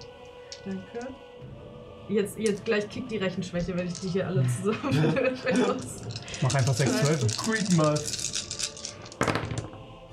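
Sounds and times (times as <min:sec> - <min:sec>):
speech: 0:00.6 - 0:08.2
several dice clattering into a dice tray: 0:03.8 - 0:04.2, 0:05.7 - 0:09.7
laughter: 0:04.4 - 0:06.0.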